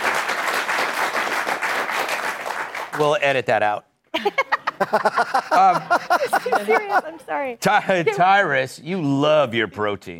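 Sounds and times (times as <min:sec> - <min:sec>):
applause: 0:00.0 - 0:03.2
speech: 0:03.0 - 0:10.1
laughter: 0:04.2 - 0:08.3.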